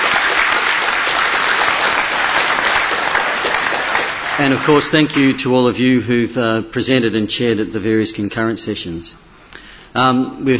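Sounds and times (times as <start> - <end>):
crowd applause: 0.0 - 5.6
speech: 4.4 - 9.3, 10.0 - 10.5.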